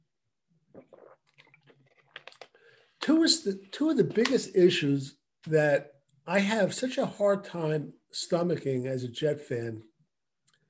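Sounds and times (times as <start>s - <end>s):
person gulping and swallowing water: 0.6s - 2.6s
mouth smacking: 0.7s - 2.4s
speech: 3.1s - 9.9s.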